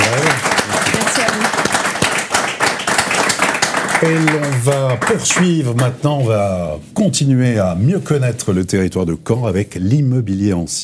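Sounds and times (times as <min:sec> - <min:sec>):
applause: 0:00.0 - 0:06.0
speech: 0:04.0 - 0:10.8.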